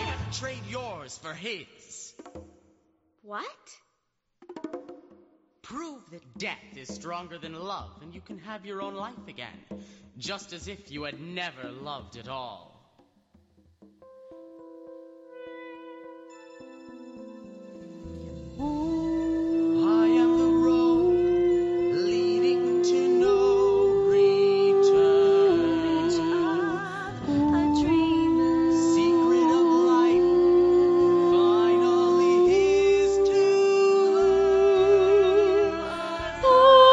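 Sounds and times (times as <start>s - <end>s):
ensemble playing: 17.2s - 36.9s.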